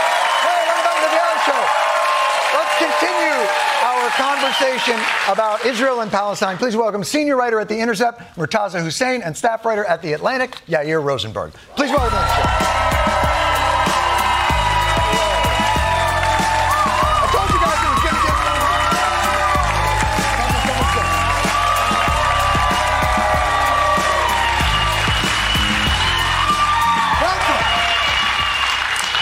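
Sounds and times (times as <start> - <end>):
studio audience cheering and whoops: 0.0 - 5.1, 11.8 - 29.1
studio audience applause at a talk show standing ovation: 0.0 - 6.6, 11.9 - 29.1
speech: 4.5 - 12.7.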